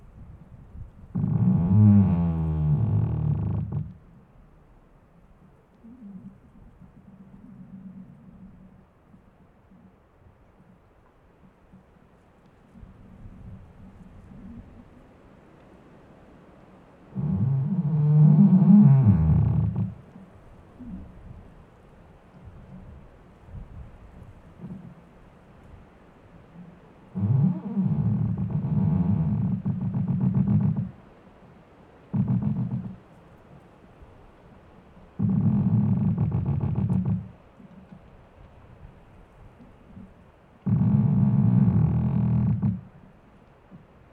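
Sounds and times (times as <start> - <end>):
faint low murmur: 0.0 - 44.1
squeaking tree groaning in low creaks: 1.1 - 4.2, 17.1 - 21.2, 24.6 - 25.0, 26.6 - 31.2, 32.0 - 33.4, 35.1 - 38.0, 39.6 - 43.1.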